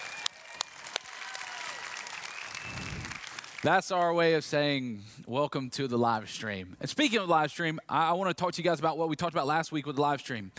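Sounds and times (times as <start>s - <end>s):
audience clapping: 0.0s - 4.2s
speech: 3.6s - 10.5s.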